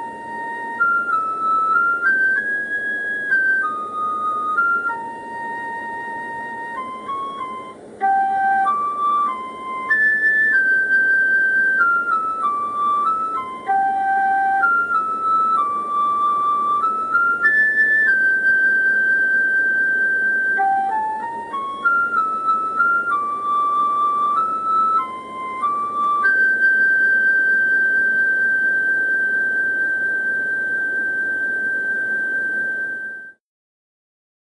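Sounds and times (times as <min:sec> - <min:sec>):
synth flute: 0:00.0 - 0:33.4.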